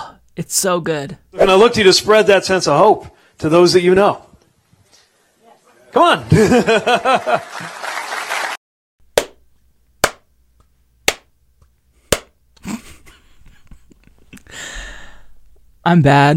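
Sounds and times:
speech: 0:00.4 - 0:04.3, 0:06.0 - 0:07.8, 0:15.9 - 0:16.3
laughter: 0:06.2 - 0:08.0, 0:12.6 - 0:14.4
lone sharp hand claps: 0:09.2 - 0:09.4, 0:10.0 - 0:12.4.

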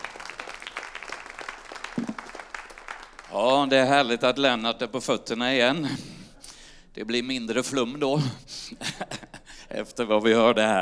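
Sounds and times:
audience applause: 0:00.0 - 0:04.1
speech: 0:03.3 - 0:06.1, 0:07.0 - 0:10.7
laughter: 0:08.2 - 0:09.6.

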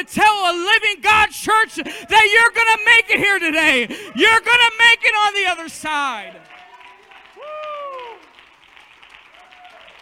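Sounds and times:
speech: 0:00.0 - 0:06.6
people clapping: 0:04.2 - 0:10.0.

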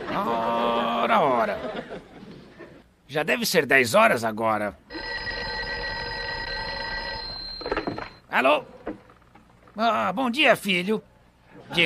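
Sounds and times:
laughter: 0:00.0 - 0:02.9, 0:11.5 - 0:11.8
speech: 0:00.2 - 0:00.4, 0:01.1 - 0:02.1, 0:03.1 - 0:05.3, 0:08.3 - 0:09.0, 0:09.8 - 0:11.1, 0:11.7 - 0:11.8
telephone ringing: 0:04.9 - 0:08.3.

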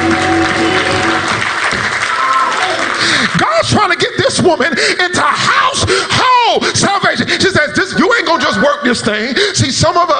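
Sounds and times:
audience clapping: 0:00.0 - 0:04.1
speech: 0:04.4 - 0:10.1.

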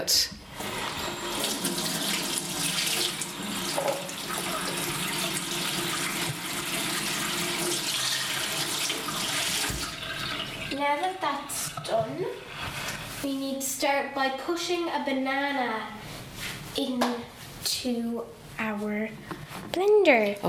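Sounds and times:
speech: 0:00.0 - 0:00.4, 0:10.8 - 0:16.0, 0:16.8 - 0:20.4
tap running while washing hands: 0:00.5 - 0:10.8.

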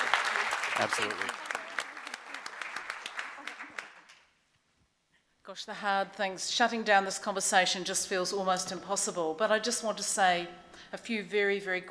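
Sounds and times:
audience applause: 0:00.0 - 0:04.2
speech: 0:00.8 - 0:01.4, 0:05.5 - 0:11.9.

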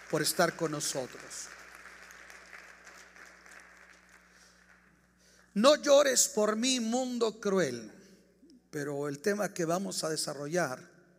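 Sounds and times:
audience applause: 0:00.0 - 0:04.9
speech: 0:00.1 - 0:01.6, 0:05.6 - 0:08.0, 0:08.7 - 0:10.9.

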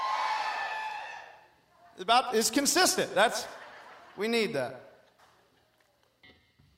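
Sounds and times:
audience yelling: 0:00.0 - 0:01.4
speech: 0:02.0 - 0:03.6, 0:04.2 - 0:04.9
laughter: 0:03.2 - 0:04.6.

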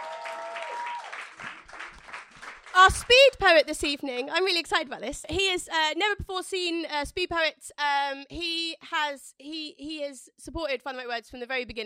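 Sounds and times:
round of applause: 0:00.0 - 0:03.4
speech: 0:02.8 - 0:11.8.

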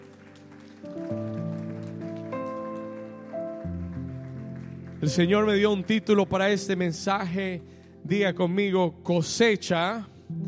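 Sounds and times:
audience applauding: 0:00.0 - 0:06.2
keyboard or organ chords: 0:00.0 - 0:10.4
speech: 0:05.0 - 0:10.1.

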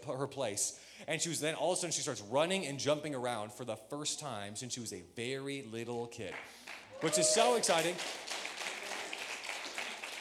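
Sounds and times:
speech: 0:00.0 - 0:08.4
audience clapping: 0:06.3 - 0:10.1.

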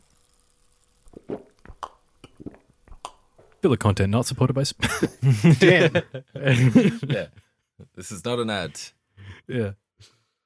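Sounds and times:
sipping a Pepsi: 0:01.0 - 0:03.5
speech: 0:03.6 - 0:07.4, 0:08.0 - 0:10.2
laughter: 0:04.8 - 0:08.9.

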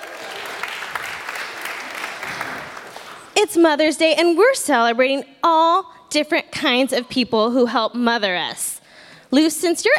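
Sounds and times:
people clapping: 0:00.0 - 0:03.4
speech: 0:03.4 - 0:08.7, 0:09.3 - 0:09.9.

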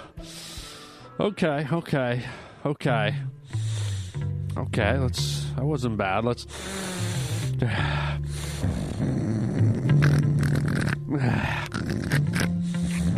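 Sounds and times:
speech: 0:01.2 - 0:03.4, 0:04.6 - 0:06.9, 0:07.6 - 0:09.2
loud rough snorting sniff: 0:06.6 - 0:07.6, 0:08.4 - 0:13.1.

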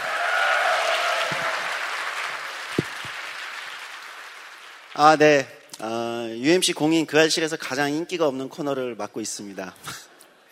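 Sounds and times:
audience applause: 0:00.0 - 0:05.2
speech: 0:05.0 - 0:10.0.

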